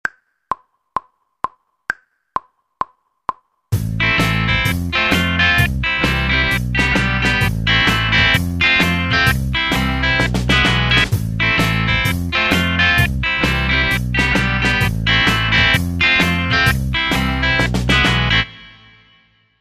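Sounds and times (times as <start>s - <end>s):
guitar: 3.8s - 19.4s.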